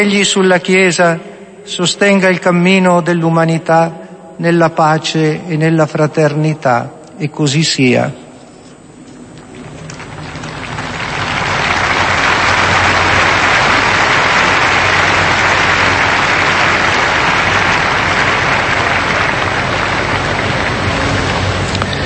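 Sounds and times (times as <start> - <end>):
speech: 0.0 - 8.2
audience applause: 9.4 - 22.0.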